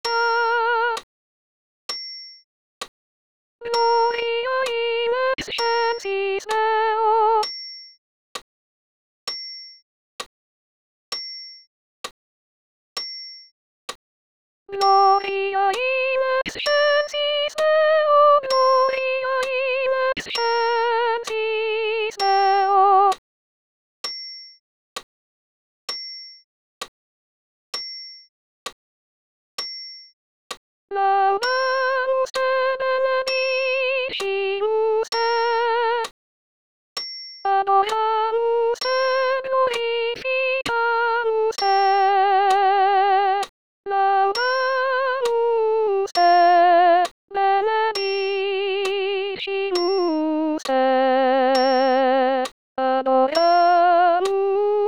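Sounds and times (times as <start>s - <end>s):
solo soprano singing: 0.0s - 1.1s, 3.6s - 7.4s, 14.7s - 23.2s, 30.9s - 36.1s, 37.5s - 54.8s.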